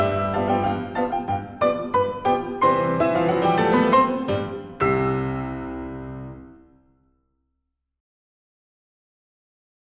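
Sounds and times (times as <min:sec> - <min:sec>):
piano playing a foxtrot chanson: 0:00.0 - 0:06.8.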